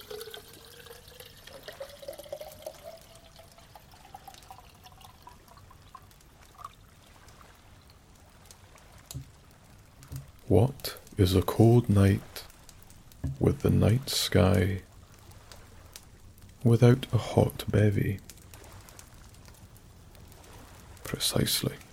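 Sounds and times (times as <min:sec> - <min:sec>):
water pouring into a small metal kettle: 0:00.0 - 0:06.8
speech: 0:10.5 - 0:12.4, 0:13.4 - 0:14.9, 0:16.6 - 0:18.3, 0:21.2 - 0:21.8.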